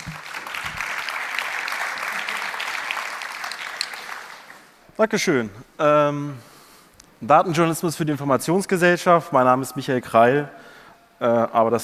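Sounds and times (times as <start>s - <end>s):
audience applause: 0.0s - 4.8s
speech: 5.0s - 6.5s, 7.2s - 10.6s, 11.2s - 11.8s.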